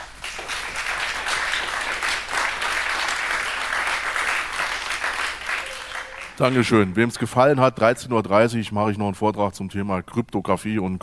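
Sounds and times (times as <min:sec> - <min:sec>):
audience applause: 0:00.0 - 0:07.4
speech: 0:06.4 - 0:11.0.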